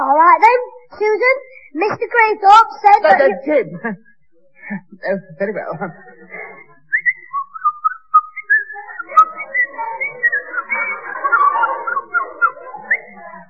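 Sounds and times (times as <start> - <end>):
speech: 0.4 - 4.1, 4.7 - 6.7
laughter: 2.9 - 7.4, 8.4 - 13.4
person whistling an imitation of thrush birdsong: 6.9 - 10.6.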